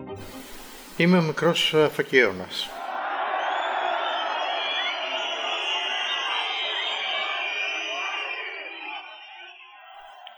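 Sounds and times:
crowd applauding: 0.2s - 9.4s
speech: 1.0s - 2.8s.

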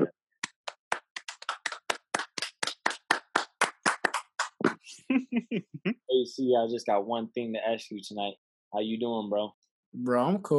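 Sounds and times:
clapping: 0.4s - 4.8s
speech: 4.6s - 10.5s.

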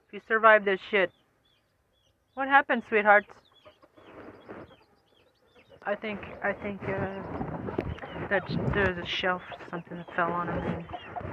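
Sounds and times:
speech: 0.1s - 1.2s, 2.4s - 3.4s, 5.8s - 7.5s, 8.3s - 11.3s
chicken clucking: 3.5s - 11.3s.

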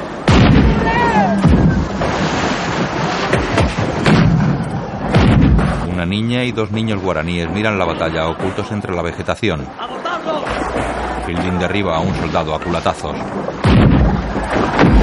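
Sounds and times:
culverin cannon firing from a canoe: 0.3s - 2.8s, 3.5s - 5.9s, 13.6s - 15.0s
speech: 6.1s - 10.4s, 11.3s - 13.6s.

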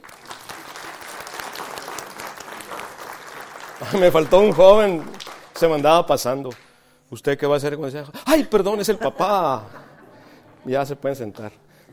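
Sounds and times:
applause: 0.0s - 6.8s
speech: 3.8s - 9.8s, 10.6s - 11.9s
laughter: 8.6s - 10.9s.

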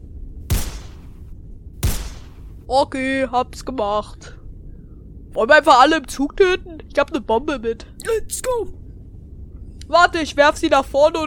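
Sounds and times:
low rumble: 0.0s - 11.2s
video game gunshots: 0.5s - 2.6s
speech: 2.7s - 4.4s, 5.3s - 8.8s, 9.9s - 11.2s.

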